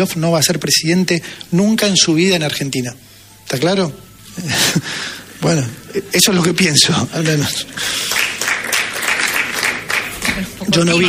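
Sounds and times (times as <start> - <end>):
speech: 0.0 - 8.2, 10.4 - 11.0
audience applause at a corporate event: 7.2 - 11.0.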